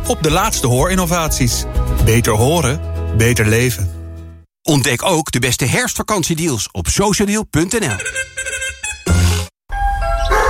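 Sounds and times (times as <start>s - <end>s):
speech: 0.1s - 4.0s, 4.7s - 8.4s
chiming tone: 9.7s - 10.4s
shepherd dog barking at the door: 10.2s - 10.4s.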